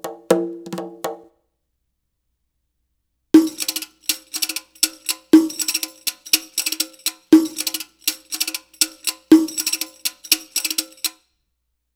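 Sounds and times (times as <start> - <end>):
Arabic rhythm percussion: 0.0 - 1.3, 3.4 - 11.2.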